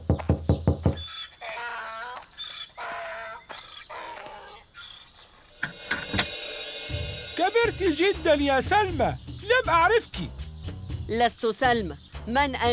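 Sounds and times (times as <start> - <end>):
knocking on a door: 0.0 - 1.0
speech: 7.8 - 10.4, 11.1 - 12.7.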